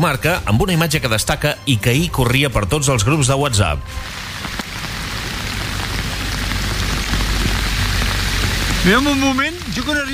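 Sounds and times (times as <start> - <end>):
speech: 0.0 - 4.6, 8.8 - 10.1
heavy rain: 3.9 - 10.1.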